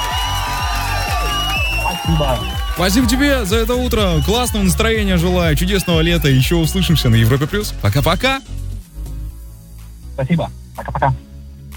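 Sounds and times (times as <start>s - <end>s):
applause and cheering: 0.0s - 8.4s
speech: 2.1s - 8.6s, 10.2s - 11.2s.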